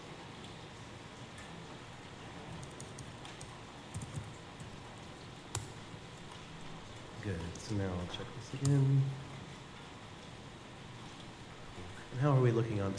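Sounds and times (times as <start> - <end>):
faint steady hiss: 0.0 - 12.9
typing on a computer keyboard: 2.5 - 4.8
speech: 7.2 - 9.2, 12.2 - 12.9.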